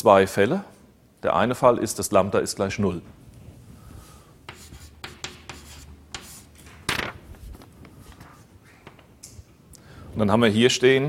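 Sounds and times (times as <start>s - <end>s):
speech: 0.0s - 3.2s, 10.2s - 11.0s
writing on a board during a maths lecture: 4.5s - 6.6s.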